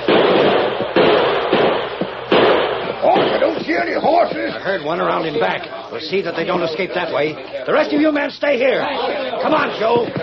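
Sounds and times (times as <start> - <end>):
gunfire volley: 0.0 - 4.0
speech: 4.6 - 10.2.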